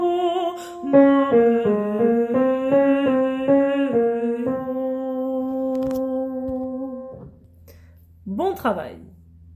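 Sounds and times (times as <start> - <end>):
mezzo-soprano part singing: 0.0 - 7.4.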